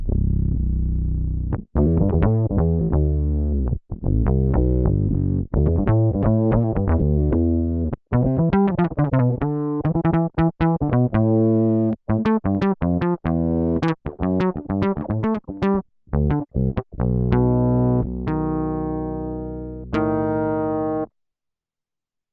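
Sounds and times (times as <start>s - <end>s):
synth bass: 0.0s - 21.1s.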